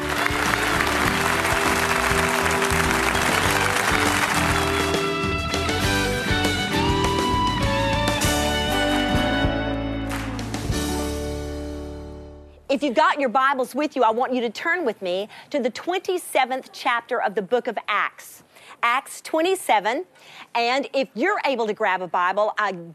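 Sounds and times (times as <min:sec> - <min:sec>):
crowd applauding to welcome a speaker onstage: 0:00.0 - 0:06.6, 0:10.0 - 0:10.7
music: 0:00.0 - 0:12.7
speech: 0:12.7 - 0:22.9.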